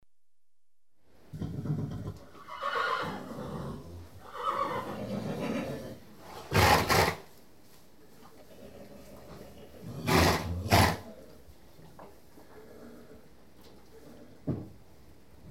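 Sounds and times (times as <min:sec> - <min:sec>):
horse whinnying: 0:01.4 - 0:07.2, 0:10.0 - 0:11.0.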